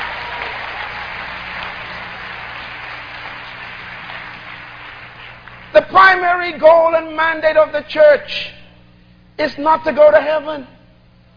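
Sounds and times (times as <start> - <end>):
audience clapping hands once: 0.0 - 5.7
speech: 5.8 - 8.6, 9.4 - 10.7.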